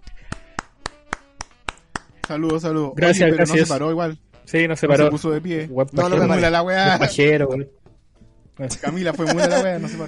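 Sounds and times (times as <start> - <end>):
person clapping hands: 0.0 - 2.8
speech: 2.3 - 7.8, 8.6 - 10.0
laughter: 8.6 - 10.0.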